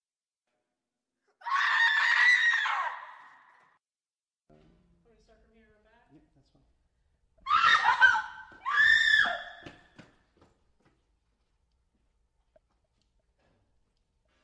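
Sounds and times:
agonized screaming: 1.4 - 3.6, 7.4 - 9.6.

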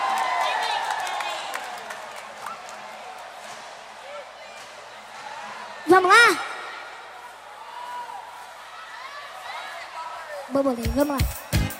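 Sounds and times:
audience applause for a friend called up on stage: 0.0 - 3.4
speech: 6.0 - 6.5, 10.6 - 11.4.

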